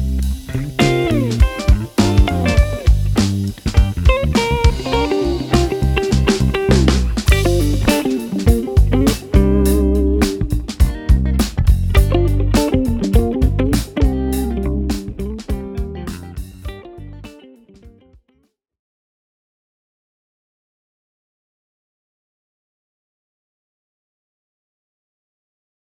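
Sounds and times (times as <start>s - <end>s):
slick jazz: 0.0s - 17.4s.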